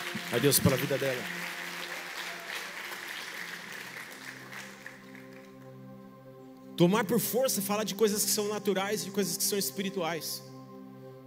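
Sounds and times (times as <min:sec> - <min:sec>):
audience applause: 0:00.0 - 0:05.6
speech: 0:00.3 - 0:01.6, 0:06.8 - 0:10.5.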